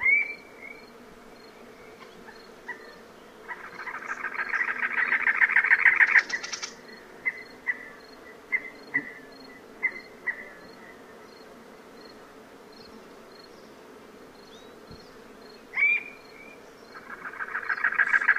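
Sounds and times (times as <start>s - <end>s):
North American cactus wren calling: 1.8s - 9.2s, 14.6s - 18.3s.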